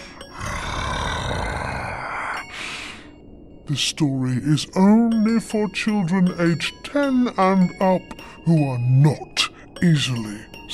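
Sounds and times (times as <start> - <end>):
scary creature growling: 0.3 - 2.4
speech: 3.7 - 10.7.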